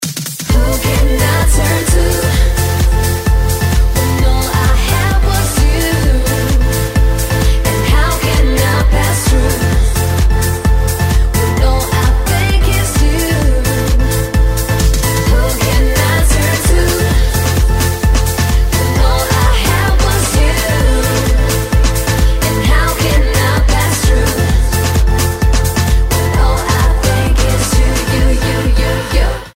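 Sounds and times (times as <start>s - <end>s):
groovebox music: 0.0s - 29.5s.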